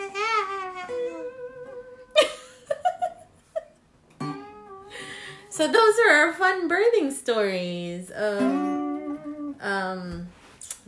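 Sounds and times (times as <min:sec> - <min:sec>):
voice imitating a baby's wailing cry: 0:00.0 - 0:02.1
speech: 0:05.6 - 0:08.8, 0:09.6 - 0:10.8.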